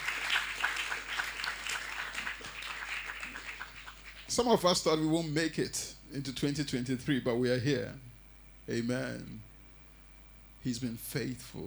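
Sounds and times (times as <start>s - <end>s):
audience clapping: 0.0s - 4.6s
speech: 4.4s - 8.1s, 8.7s - 9.5s, 10.6s - 11.6s.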